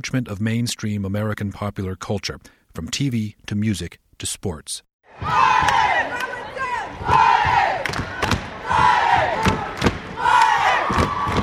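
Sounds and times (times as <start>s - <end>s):
speech: 0.0s - 5.8s
war cries from basketball crowd: 5.1s - 11.4s.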